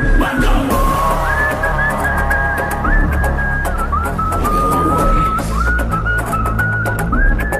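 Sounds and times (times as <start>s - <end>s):
epic background music ringtone: 0.2s - 7.5s.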